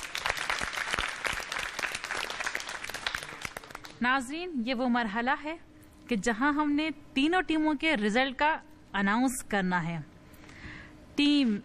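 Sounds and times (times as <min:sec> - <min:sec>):
crowd clapping: 0:00.0 - 0:04.0
speech: 0:04.0 - 0:10.1, 0:11.2 - 0:11.6.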